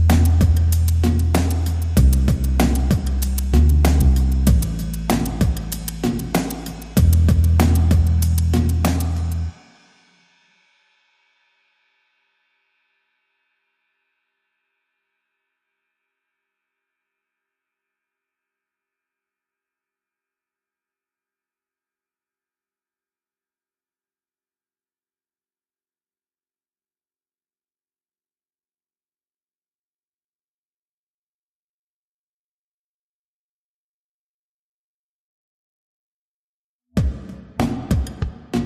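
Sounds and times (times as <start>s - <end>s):
bass: 0.0s - 9.6s, 37.0s - 38.6s
drums: 0.0s - 11.4s, 37.0s - 38.6s.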